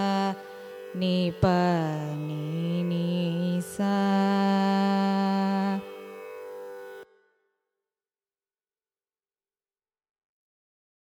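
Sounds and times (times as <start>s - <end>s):
carnatic music ascending and descending raga scale: 0.0s - 7.4s.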